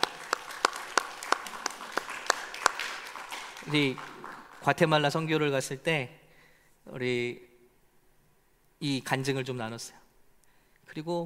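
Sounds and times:
audience applauding: 0.0s - 5.2s
speech: 3.7s - 6.2s, 6.8s - 7.5s, 8.8s - 10.0s, 10.9s - 11.2s.

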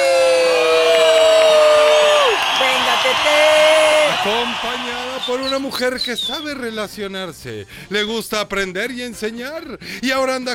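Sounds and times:
audience applause and cheering: 0.0s - 6.0s
long high whistle or whoop: 2.2s - 6.6s
speech: 4.2s - 10.5s.

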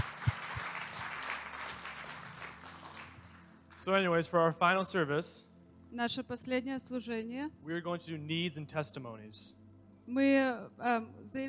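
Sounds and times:
crowd applauding: 0.0s - 4.0s
speech: 3.8s - 11.4s.

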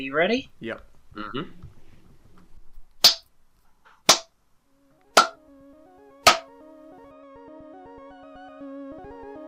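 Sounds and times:
speech: 0.0s - 1.7s
hand claps in rhythm: 3.0s - 3.2s, 6.3s - 6.5s.

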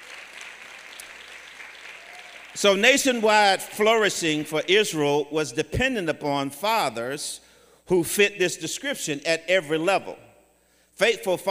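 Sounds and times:
audience applauding: 0.0s - 2.6s
speech: 2.6s - 10.3s, 11.0s - 11.5s.

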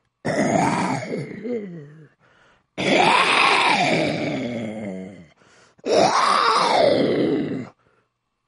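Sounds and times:
person imitating a lion's growl with rough roars: 0.3s - 2.2s, 2.8s - 7.8s.

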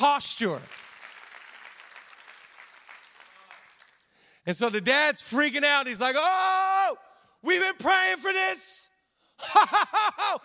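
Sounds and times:
speech: 0.0s - 0.8s, 4.5s - 10.4s
audience clapping: 0.4s - 4.3s
laughter: 9.4s - 10.4s.

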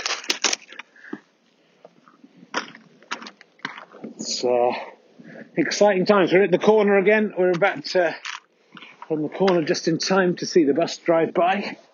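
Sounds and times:
ice crunching underfoot: 0.0s - 0.9s, 2.5s - 4.2s
speech: 4.4s - 5.0s, 5.6s - 8.2s, 9.1s - 11.9s.

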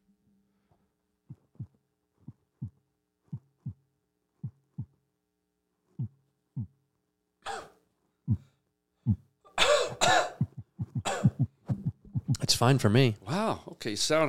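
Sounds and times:
slow human heartbeat: 1.3s - 5.0s, 6.0s - 6.8s, 8.3s - 9.3s, 9.9s - 12.6s
coughing or throat clearing: 7.4s - 7.8s, 9.5s - 11.6s
speech: 12.6s - 14.2s.

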